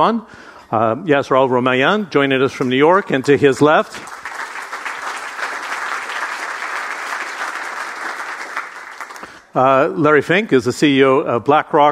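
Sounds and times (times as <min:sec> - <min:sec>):
speech: 0:00.0 - 0:04.2, 0:09.6 - 0:11.9
audience applause welcoming guests onto a conference panel: 0:04.0 - 0:09.4.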